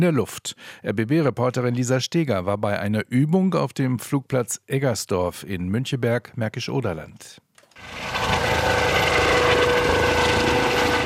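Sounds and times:
speech: 0.0 - 8.4
Bundespolizei police helicopter flying: 7.7 - 11.0.

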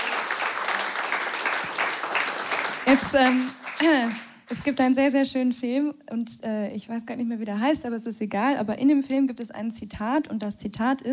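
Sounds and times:
audience applause after a live music and singing performance: 0.0 - 4.4
speech: 2.9 - 11.1.

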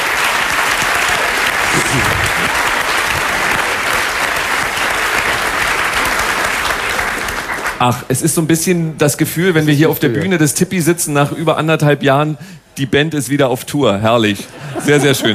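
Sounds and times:
audience applause: 0.0 - 7.8
laughter: 1.1 - 3.9, 14.5 - 15.3
speech: 7.8 - 15.3.

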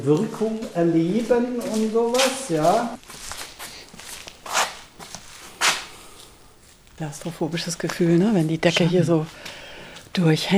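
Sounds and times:
speech: 0.0 - 3.1, 7.0 - 10.5
shuffling footsteps walking into the next room of an old building: 0.0 - 10.3.

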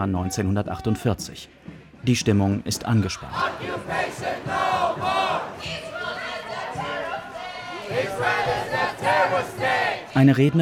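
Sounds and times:
speech: 0.0 - 5.8, 7.9 - 10.6
demonstrators chanting in chorus: 3.1 - 10.6.

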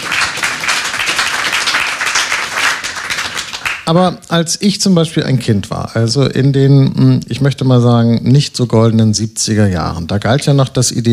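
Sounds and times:
audience clapping: 0.0 - 4.0
speech: 3.9 - 11.1.

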